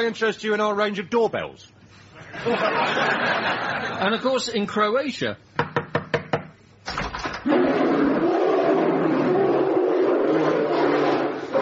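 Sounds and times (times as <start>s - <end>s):
speech: 0.0s - 5.6s
laughter: 2.2s - 4.2s
enormous brown bear roaring: 7.4s - 11.5s.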